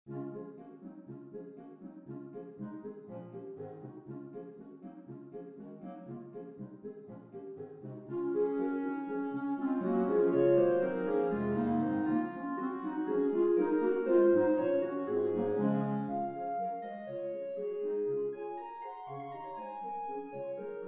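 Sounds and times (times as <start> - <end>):
clarinet ensemble playing: 8.1 - 20.8.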